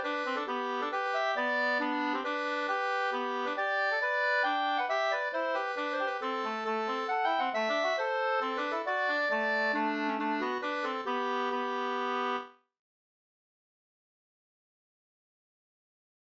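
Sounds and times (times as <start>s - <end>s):
Swedish folk dance polska: 0.0s - 12.3s.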